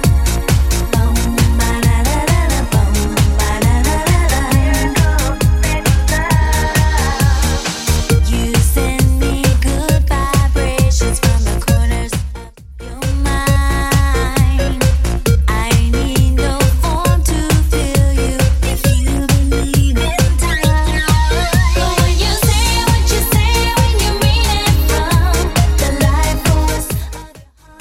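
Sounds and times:
90s electronic music track at 134 bpm: 0.0s - 27.7s.

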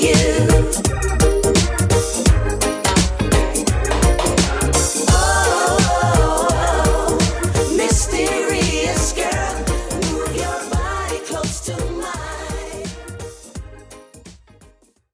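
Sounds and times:
90s reggae drum beat at 85 BPM: 0.0s - 14.4s.

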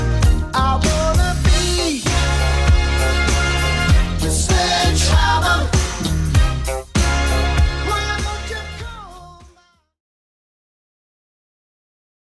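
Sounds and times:
80s drum beat: 0.0s - 9.0s.

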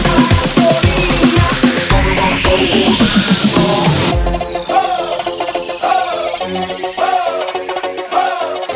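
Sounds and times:
bootleg music transition: 0.1s - 8.1s.

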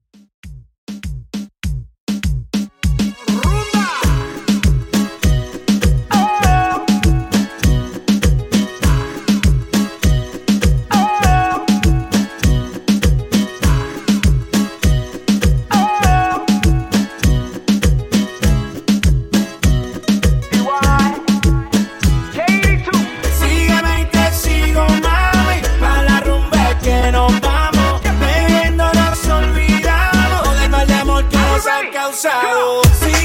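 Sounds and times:
DJ intro: 2.8s - 31.8s, 32.4s - 33.2s.

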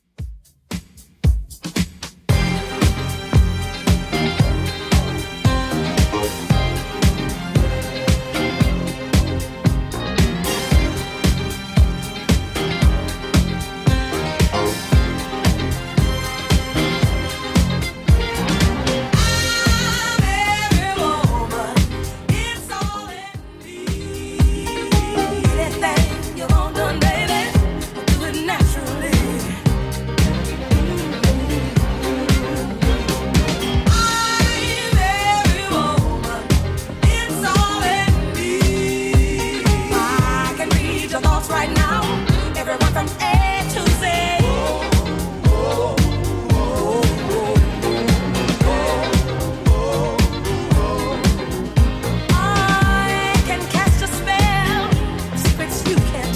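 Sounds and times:
1970s style music at 114 bpm: 0.2s - 56.3s.

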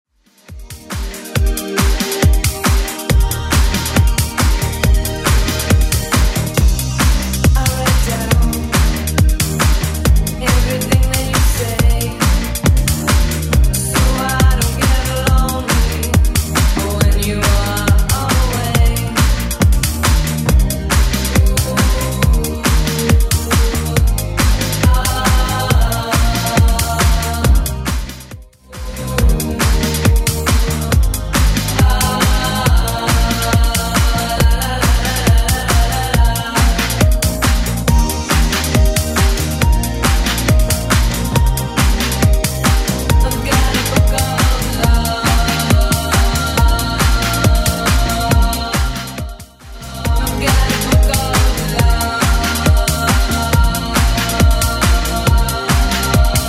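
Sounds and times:
80s club music at 138 BPM: 0.2s - 56.4s.

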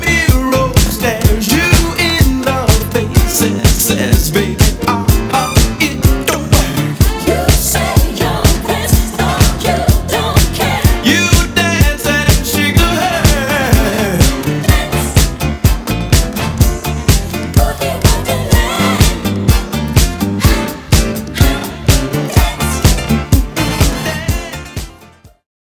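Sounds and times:
Redrum drum machine beat at 125 bpm: 0.0s - 25.4s.

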